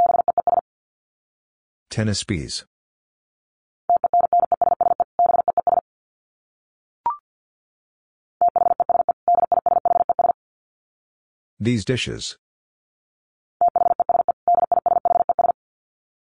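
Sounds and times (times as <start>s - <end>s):
Morse code dits at 50 wpm: 0.0s - 0.6s, 3.9s - 5.8s, 8.4s - 10.4s, 13.6s - 15.6s
speech: 2.0s - 2.7s, 11.6s - 12.4s.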